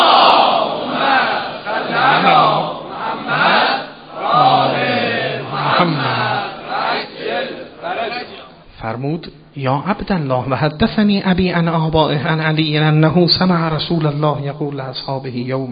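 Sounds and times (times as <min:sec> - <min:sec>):
crowd chanting salawat in unison: 0:00.0 - 0:08.6
speech: 0:08.8 - 0:15.7.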